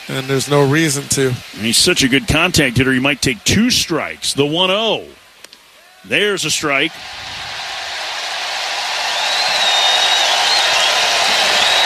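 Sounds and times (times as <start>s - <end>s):
crowd jeering, Bronx cheer: 0.0s - 4.5s, 5.8s - 11.8s
speech: 0.1s - 5.2s, 6.0s - 7.4s
thin whistle: 9.1s - 11.8s.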